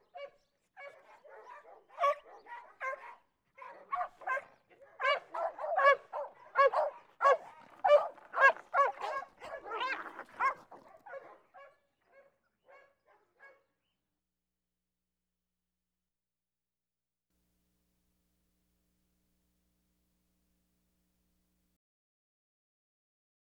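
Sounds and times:
dogs fighting with barks yelps and snarling growls: 0.2s - 12.2s.

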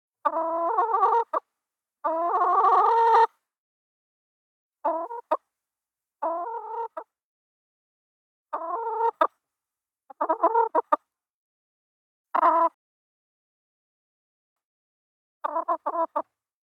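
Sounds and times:
chicken clucking: 0.2s - 1.4s, 2.0s - 3.3s, 4.8s - 5.4s, 6.2s - 7.1s, 8.5s - 9.4s, 10.1s - 11.1s, 12.3s - 12.8s, 15.4s - 16.4s.

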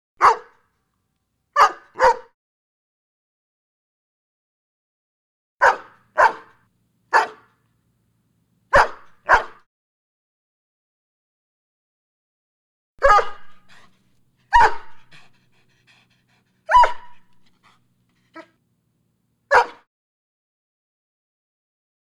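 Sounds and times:
large dog barking: 0.2s - 0.6s, 1.6s - 2.3s, 5.6s - 7.6s, 8.7s - 9.6s, 13.0s - 18.6s, 19.5s - 19.8s.

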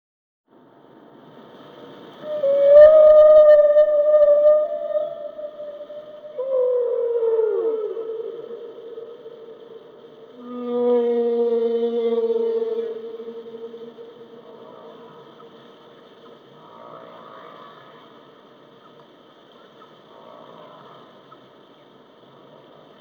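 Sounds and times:
humpback whale moaning: 2.2s - 15.6s, 16.6s - 18.3s.

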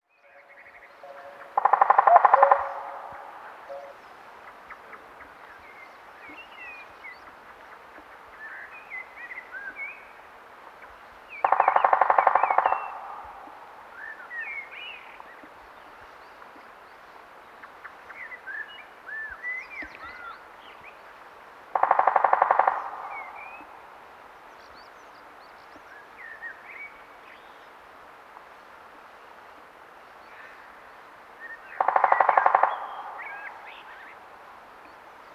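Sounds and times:
three-toed woodpecker drumming: 1.1s - 4.0s, 11.4s - 13.7s, 21.8s - 23.8s, 31.8s - 33.9s.

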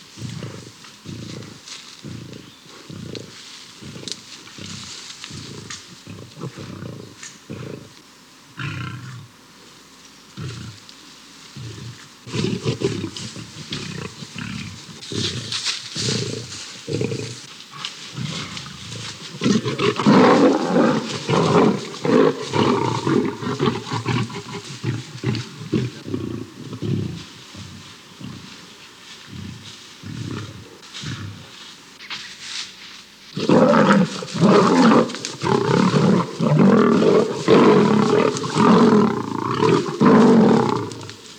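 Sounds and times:
lions fighting, snarling and roaring: 0.2s - 8.0s, 11.6s - 31.5s, 33.4s - 41.2s.

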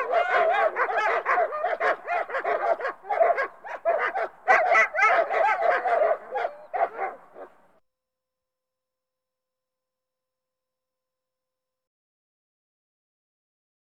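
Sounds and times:
pack of dogs barking and yelping: 0.0s - 7.7s.

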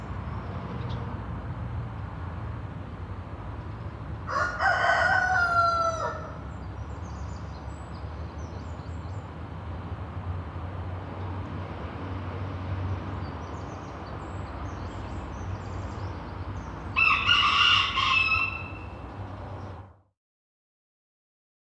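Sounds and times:
low traffic rumble: 0.0s - 20.0s
rooster crowing: 4.3s - 6.4s, 16.9s - 19.0s.

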